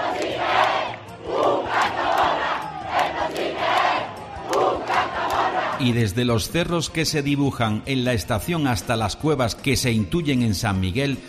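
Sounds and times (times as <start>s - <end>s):
festival crowd shouting a rhythmic cry: 0.0s - 5.8s
speech: 5.8s - 11.2s.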